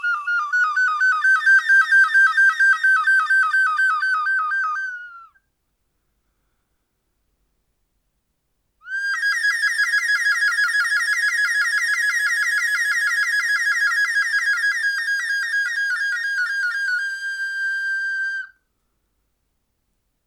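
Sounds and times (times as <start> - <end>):
flutes: 0.0 - 5.4, 8.9 - 18.6.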